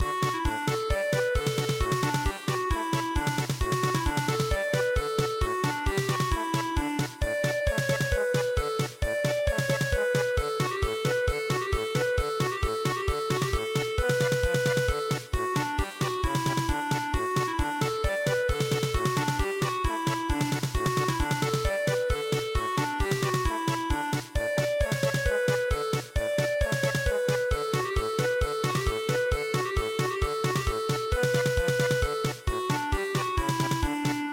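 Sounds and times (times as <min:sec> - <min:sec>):
German polka music: 0:00.0 - 0:34.3.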